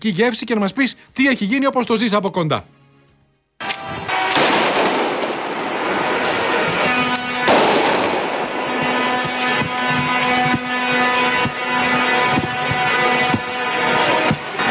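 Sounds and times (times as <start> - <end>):
speech: 0.0 - 2.8
crowd noise roar: 3.6 - 14.7
droning horn: 3.6 - 14.7
explosive bangs in street clashes between protesting farmers and police: 3.7 - 14.7.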